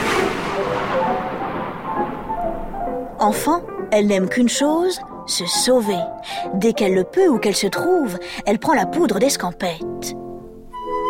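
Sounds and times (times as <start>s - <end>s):
thunderstorm at night: 0.0s - 5.2s
speech: 3.2s - 10.2s.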